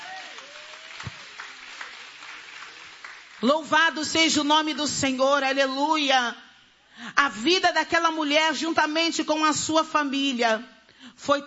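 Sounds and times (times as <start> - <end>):
audience clapping hands: 0.0 - 3.6
speech: 3.4 - 6.4, 7.0 - 11.4.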